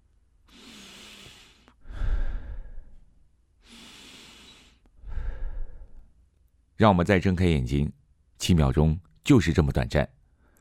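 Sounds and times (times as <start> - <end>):
slow deep breathing: 0.4 - 6.2
speech: 6.8 - 10.2.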